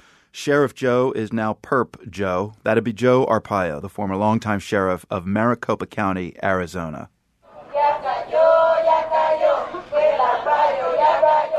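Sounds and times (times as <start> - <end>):
speech: 0.4 - 7.2
crowd of immigrant activists chanting in Spanish: 7.5 - 11.5.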